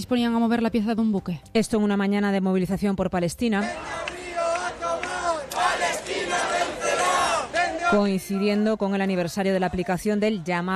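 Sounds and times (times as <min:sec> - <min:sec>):
speech: 0:00.0 - 0:04.0, 0:07.9 - 0:10.7
protest crowd chanting slogans: 0:03.6 - 0:10.6.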